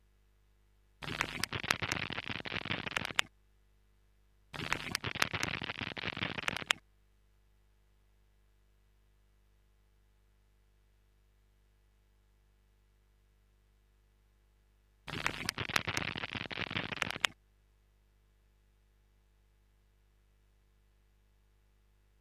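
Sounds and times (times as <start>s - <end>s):
stereo instrument crackling loop: 1.0s - 3.3s, 4.6s - 6.8s, 15.1s - 17.4s.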